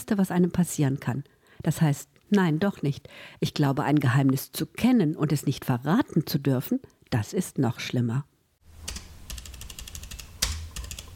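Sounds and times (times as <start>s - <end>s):
speech: 0.0s - 8.3s
typewriter-like key strikes writing many X's on a page: 8.9s - 11.1s.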